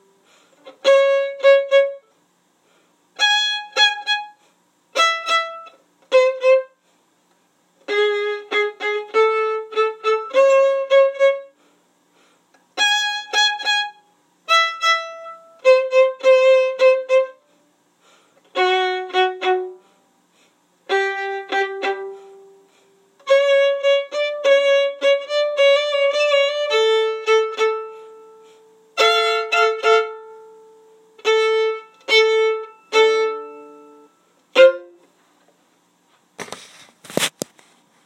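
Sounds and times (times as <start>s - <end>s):
violin: 0.0s - 2.2s, 3.2s - 6.8s, 7.8s - 11.6s, 12.7s - 17.5s, 18.4s - 19.8s, 20.8s - 35.2s.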